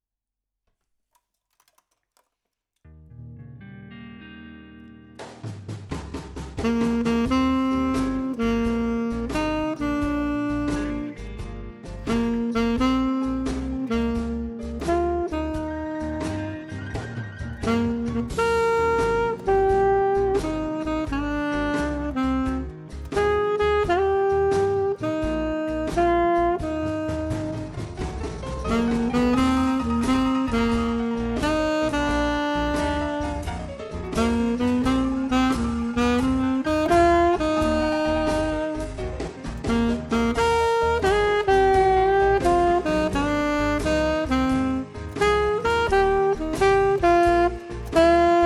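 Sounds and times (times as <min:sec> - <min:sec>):
birthday song on saxophone: 0:06.6 - 0:48.4.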